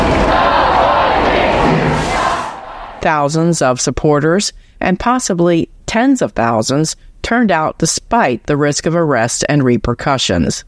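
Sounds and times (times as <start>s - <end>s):
crowd of mourners chanting a slogan walking from church to cemetery: 0.0s - 3.1s
speech: 3.0s - 10.6s.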